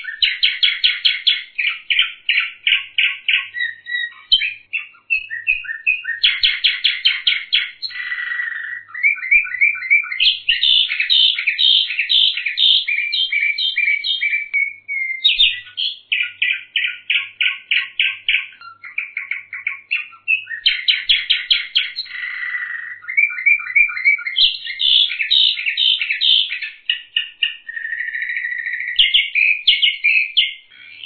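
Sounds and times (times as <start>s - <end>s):
bird song with whistled notes and buzzy rattling phrases: 0.0s - 31.0s.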